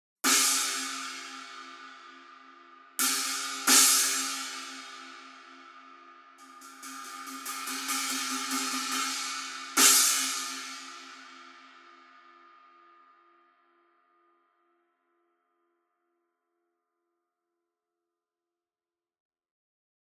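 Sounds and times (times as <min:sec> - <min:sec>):
resonant 16-inch rock china cymbal: 0:00.3 - 0:11.8.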